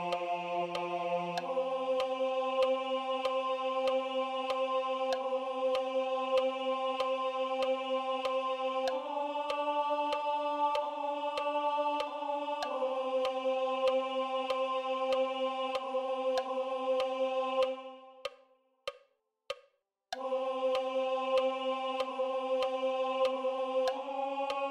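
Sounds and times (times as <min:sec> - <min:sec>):
tenors singing: 0:00.0 - 0:18.4, 0:20.2 - 0:24.6.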